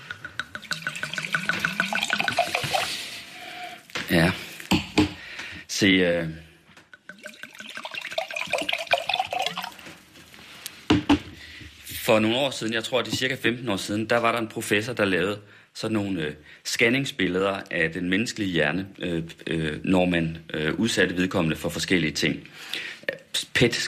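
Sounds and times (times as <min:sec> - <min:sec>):
wine poured into a glass: 0:00.0 - 0:03.2, 0:07.0 - 0:10.0
speech: 0:04.1 - 0:04.4, 0:05.8 - 0:06.5, 0:12.1 - 0:23.8.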